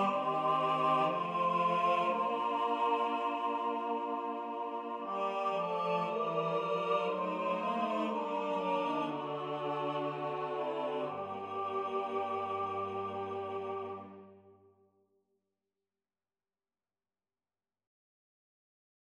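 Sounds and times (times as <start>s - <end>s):
cello: 0.0s - 14.5s.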